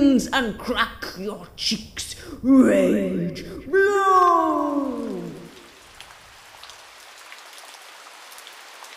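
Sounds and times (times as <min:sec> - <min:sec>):
speech: 0:00.2 - 0:05.1
water dripping from the roof: 0:03.4 - 0:08.9.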